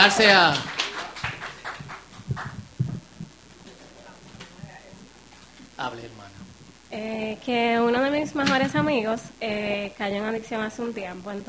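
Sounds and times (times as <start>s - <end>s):
speech: 0.0s - 0.8s, 5.8s - 11.4s
small audience clapping: 0.0s - 4.6s.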